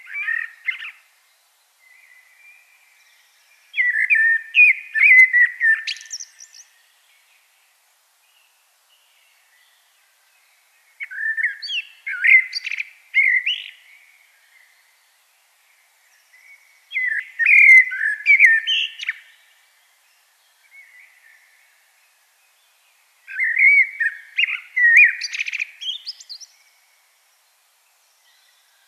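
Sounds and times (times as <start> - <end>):
common blackbird whistled song: 0.0 - 1.0, 1.8 - 6.8, 11.0 - 14.8, 16.2 - 19.4, 23.3 - 26.8.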